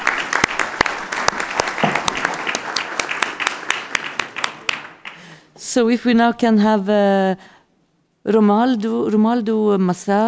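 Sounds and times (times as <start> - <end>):
crowd audience applause: 0.0 - 5.4
speech: 5.8 - 7.6, 8.2 - 10.2.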